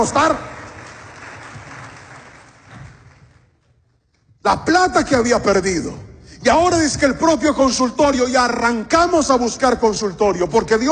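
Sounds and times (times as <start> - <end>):
speech: 0.0 - 0.5, 4.4 - 10.9
audience applauding: 0.0 - 3.5.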